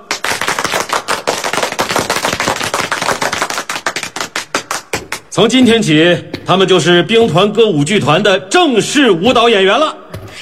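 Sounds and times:
warm crowd applause welcoming new members: 0.0 - 5.2
speech: 5.4 - 10.0.

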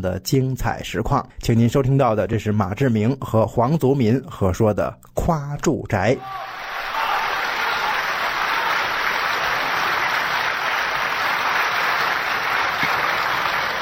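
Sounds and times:
speech: 0.0 - 6.7
audience applause: 6.2 - 13.8.

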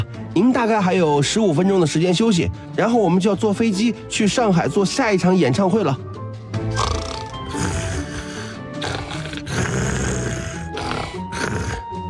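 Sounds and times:
steady tonal music: 0.0 - 12.0
speech: 0.4 - 6.1
sleeping person snoring loudly: 6.7 - 12.0.

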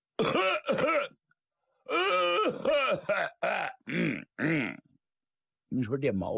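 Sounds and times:
voice imitating loud throat-clearing coughs: 0.2 - 1.2, 1.9 - 4.9.

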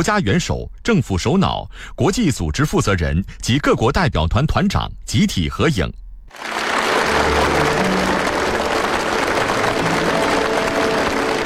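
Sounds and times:
speech: 0.0 - 6.6
warm applause from audience: 6.3 - 11.4.

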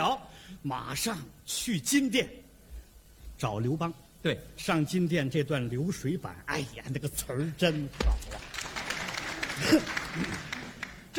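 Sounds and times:
speech: 0.1 - 2.5, 3.4 - 8.8, 9.6 - 10.6
audience applause: 8.2 - 11.1.

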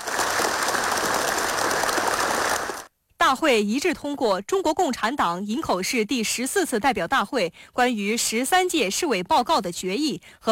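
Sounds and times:
warm applause in a meeting hall: 0.0 - 2.9
speech: 3.3 - 10.4.

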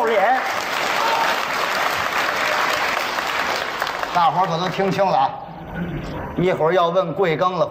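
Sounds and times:
audience applause: 0.0 - 5.1
speech: 4.2 - 7.6.

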